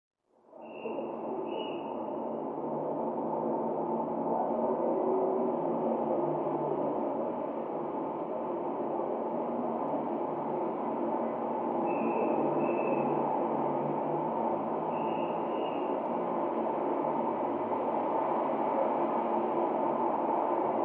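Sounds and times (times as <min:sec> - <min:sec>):
city traffic noise: 0:00.5 - 0:20.8.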